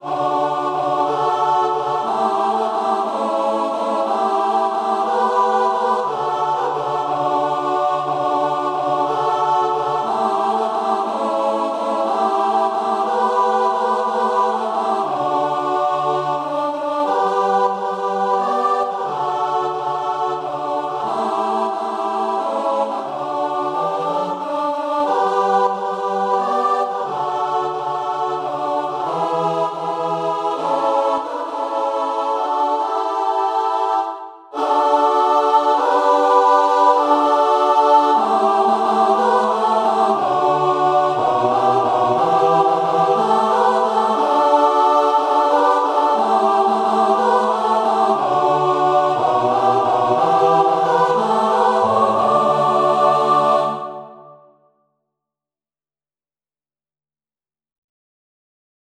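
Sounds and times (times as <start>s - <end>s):
three-part mixed choir singing: 0.0s - 54.7s.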